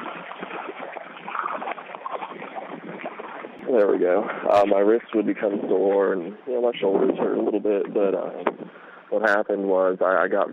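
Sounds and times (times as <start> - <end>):
paddle strokes splashing as a boat is paddled: 0.0 - 4.9
steady watery rush: 0.0 - 6.1
speech: 3.7 - 10.5.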